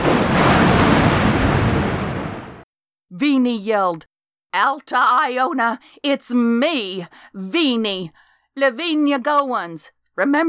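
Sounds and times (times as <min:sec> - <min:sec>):
lightning crack: 0:00.0 - 0:02.6
thunder: 0:00.0 - 0:02.6
speech: 0:03.4 - 0:10.4.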